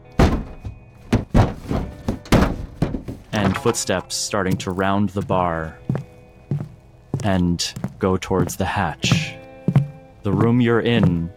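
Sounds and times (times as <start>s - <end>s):
body slammed against a bar: 0.0s - 3.3s
speech: 3.4s - 5.8s, 7.2s - 9.4s, 10.2s - 11.3s.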